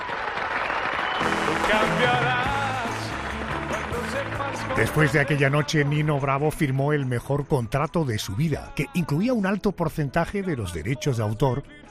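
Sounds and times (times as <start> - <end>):
cheering: 0.0 - 6.0
theatre audience applauding: 0.0 - 6.4
speech: 4.2 - 11.8.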